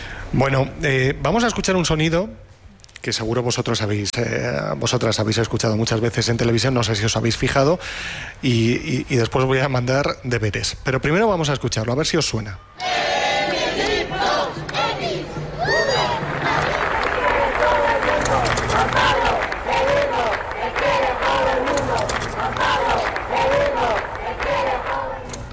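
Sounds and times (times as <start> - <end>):
speech: 0.3 - 13.3
crowd shouting during papal visit in Madrid: 12.8 - 25.5.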